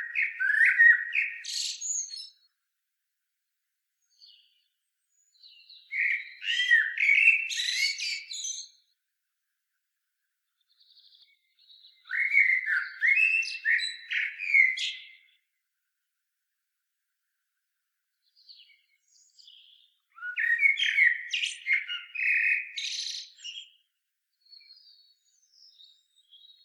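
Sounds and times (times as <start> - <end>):
common blackbird singing: 0.0 - 2.5, 4.1 - 8.9, 10.6 - 15.5, 18.3 - 26.6.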